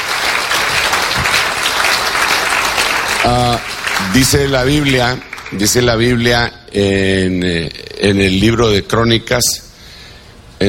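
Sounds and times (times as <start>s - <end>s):
church congregation applauding: 0.0s - 6.5s
speech: 3.2s - 9.6s.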